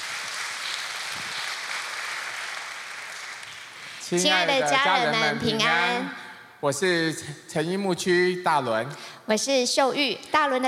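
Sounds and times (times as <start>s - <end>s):
audience clapping: 0.0s - 5.5s
speech: 4.1s - 10.6s.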